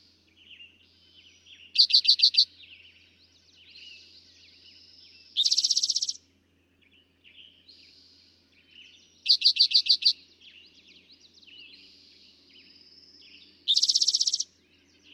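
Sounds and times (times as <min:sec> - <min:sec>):
birds twittering: 0:00.0 - 0:15.1
eastern towhee buzzy trill: 0:13.7 - 0:14.4.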